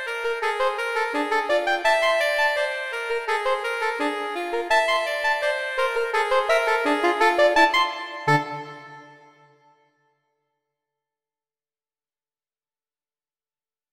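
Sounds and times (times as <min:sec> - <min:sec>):
agitato bagatelle music: 0:00.0 - 0:09.6.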